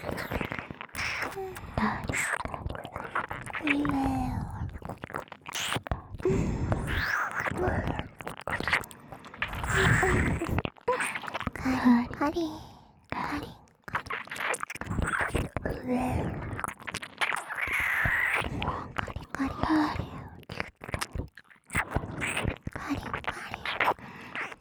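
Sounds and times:
person whispering: 0.0 - 4.8, 5.7 - 13.7, 18.5 - 20.2, 22.4 - 24.5
ear licking on both ears: 0.0 - 11.6, 13.7 - 19.4, 20.4 - 24.5.

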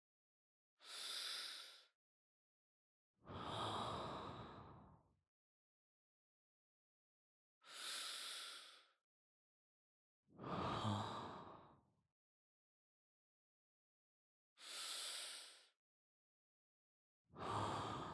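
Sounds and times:
person breathing in sleep: 0.8 - 1.9, 3.3 - 4.9, 7.6 - 9.0, 10.4 - 11.7, 14.6 - 15.8, 17.4 - 18.1.

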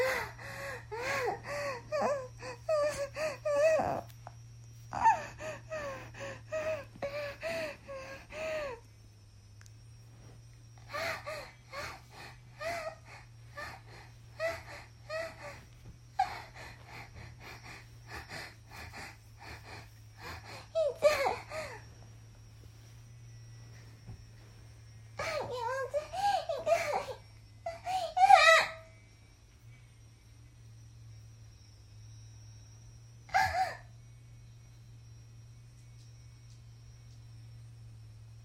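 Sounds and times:
22-year-old woman moaning and climaxing: 0.0 - 8.8, 10.8 - 21.9, 25.2 - 28.8, 33.3 - 33.9.

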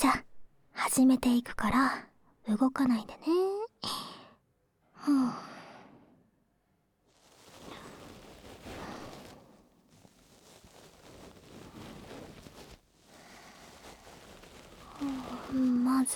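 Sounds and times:
speech: 0.0 - 0.3, 0.9 - 4.0, 5.0 - 5.5, 15.5 - 16.1
ear pick cleaning an ear in ASMR style: 7.1 - 16.1.

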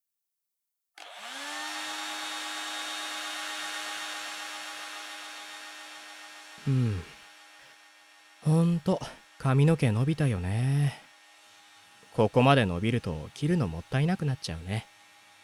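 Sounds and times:
hair dryer blowing: 1.0 - 15.4
speech: 6.6 - 7.1, 8.5 - 11.0, 12.2 - 14.9.

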